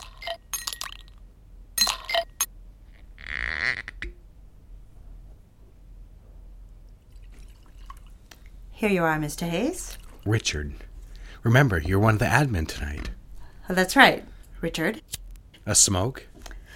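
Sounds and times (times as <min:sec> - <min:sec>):
glass clinks: 0:00.0 - 0:01.2, 0:01.8 - 0:02.5
scotch pouring into a glass: 0:06.9 - 0:08.5
speech: 0:08.8 - 0:16.3.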